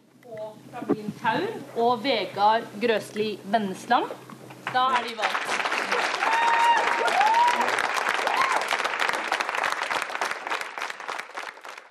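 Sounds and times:
speech: 0.7 - 6.0
crowd applause for nominated candidates: 4.7 - 11.8
whistles and cheers: 6.0 - 8.9.

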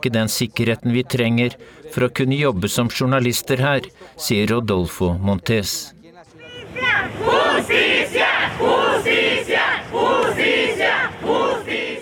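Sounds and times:
speech: 0.0 - 6.0
protesting crowd shouting for justice: 6.4 - 12.0.

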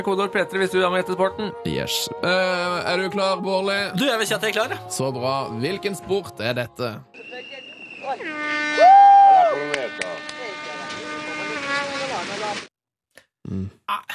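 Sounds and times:
speech: 0.0 - 10.3, 12.2 - 12.7, 13.5 - 14.1
whistle: 7.1 - 9.6
air horn: 7.2 - 12.7.

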